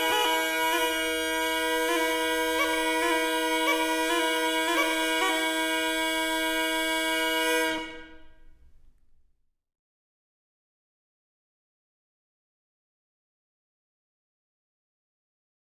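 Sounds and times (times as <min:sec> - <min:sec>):
tibiae impares wind instruments: 0:00.0 - 0:08.5.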